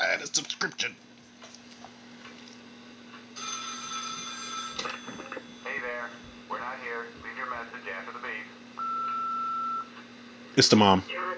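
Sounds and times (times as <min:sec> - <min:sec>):
speech: 0:00.2 - 0:01.1, 0:10.6 - 0:11.3
telephone ringing: 0:03.4 - 0:06.8, 0:08.8 - 0:09.9.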